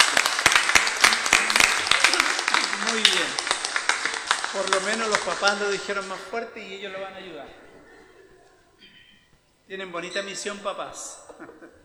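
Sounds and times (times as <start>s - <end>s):
audience applauding: 0.0s - 6.4s
laughter: 0.0s - 8.8s, 11.0s - 11.8s
speech: 4.6s - 7.7s, 9.7s - 11.8s.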